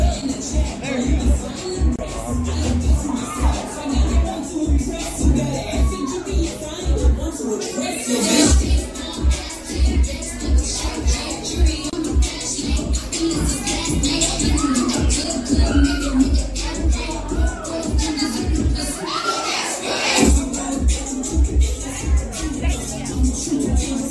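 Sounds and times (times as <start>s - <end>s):
murmur of overlapping voices in Central 111: 0.0s - 24.0s.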